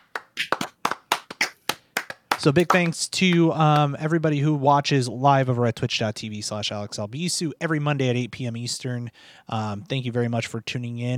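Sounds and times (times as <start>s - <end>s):
people clapping: 0.0s - 4.0s
speech: 2.4s - 11.1s.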